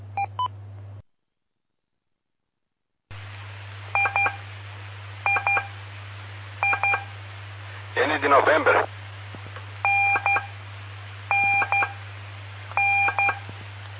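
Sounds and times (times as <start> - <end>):
steady low hum and hiss: 0.0 - 1.1, 3.1 - 13.9
Morse code telegraphy tones: 4.0 - 4.4, 5.3 - 5.7, 6.6 - 7.1, 9.8 - 10.5, 11.3 - 12.0, 12.8 - 13.4
speech: 8.0 - 9.0.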